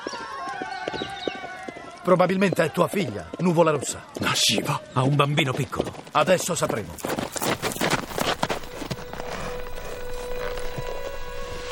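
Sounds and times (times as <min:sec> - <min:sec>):
horse galloping hooves approaching: 0:00.0 - 0:11.7
speech: 0:00.9 - 0:01.1, 0:02.1 - 0:07.3.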